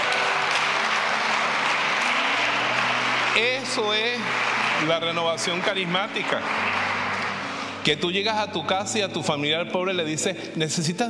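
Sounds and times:
audience applause: 0.0s - 8.4s
speech: 3.4s - 6.9s, 7.8s - 11.0s.

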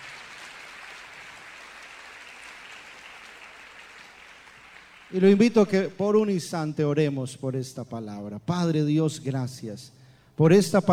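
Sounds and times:
audience applause: 0.0s - 5.4s
speech: 5.1s - 10.9s.

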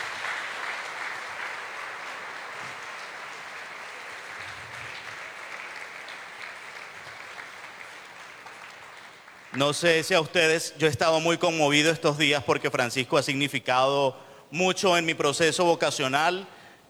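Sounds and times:
audience applause: 0.0s - 10.1s
speech: 9.6s - 16.6s.

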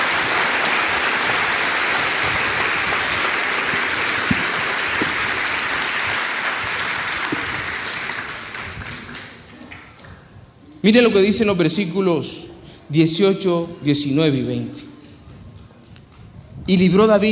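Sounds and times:
audience applause: 0.0s - 9.9s
speech: 10.8s - 14.9s, 16.7s - 17.3s.

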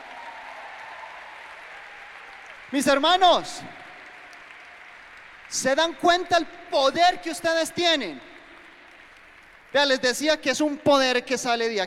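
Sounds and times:
church congregation applauding during a Spanish-language service: 0.0s - 11.8s
speech: 2.7s - 3.8s, 5.5s - 8.3s, 9.7s - 11.8s.

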